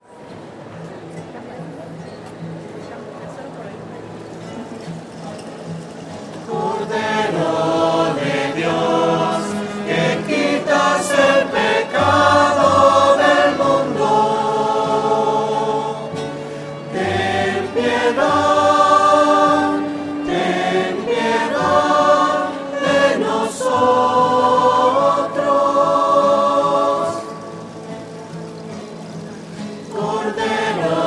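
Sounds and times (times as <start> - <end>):
voices singing: 6.4 - 31.0.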